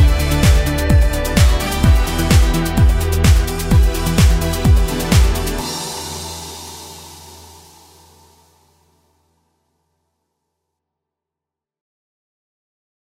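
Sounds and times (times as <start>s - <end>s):
pop dance music: 0.0s - 7.8s.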